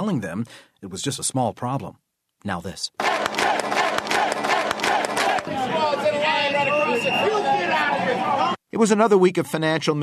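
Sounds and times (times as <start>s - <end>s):
speech: 0.0s - 3.9s, 5.5s - 10.0s
sharp percussive bangs: 3.0s - 5.6s
crowd shouting and chanting at a street demonstration: 3.0s - 8.6s
overlapping raised voices wailing and yelling: 3.0s - 8.6s.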